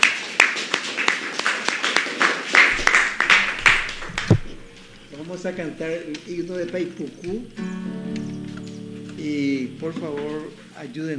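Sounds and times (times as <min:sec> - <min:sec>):
audience applauding the musicians: 0:00.0 - 0:10.5
speech: 0:05.3 - 0:07.9, 0:09.2 - 0:11.1.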